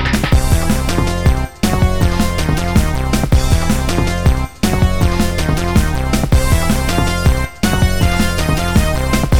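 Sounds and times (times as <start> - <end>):
brass instruments: 0.1 - 9.3.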